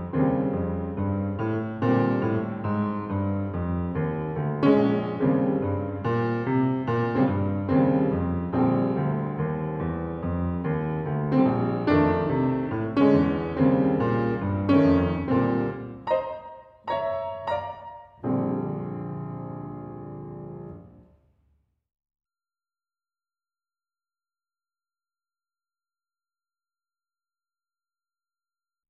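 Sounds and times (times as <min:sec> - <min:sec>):
solo piano: 0:00.0 - 0:21.1.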